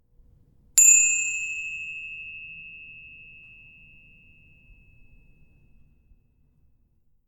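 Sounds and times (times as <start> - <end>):
hand bells: 0.8 - 4.9.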